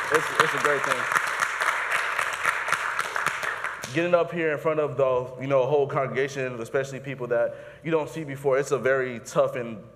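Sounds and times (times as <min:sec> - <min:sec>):
audience applause: 0:00.0 - 0:03.9
speech: 0:00.1 - 0:01.3, 0:03.9 - 0:09.9.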